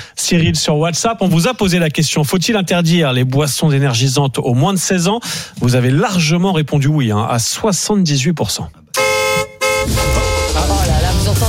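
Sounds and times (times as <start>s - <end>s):
speech: 0.2s - 8.8s
car horn toot sound effect for a compact SUV giveaway: 8.9s - 11.2s.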